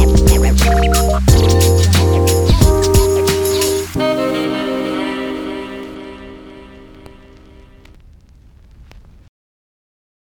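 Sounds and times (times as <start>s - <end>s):
lounge hip hop music: 0.0s - 7.9s.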